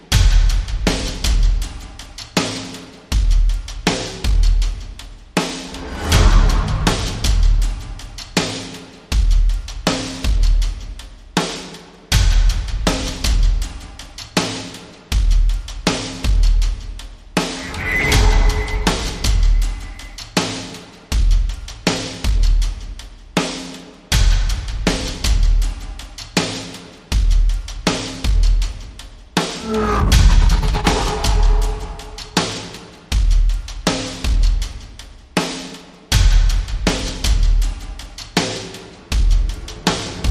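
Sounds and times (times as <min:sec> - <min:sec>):
drums: 0:00.0 - 0:40.2
sound effects: 0:17.6 - 0:20.2, 0:29.6 - 0:32.6.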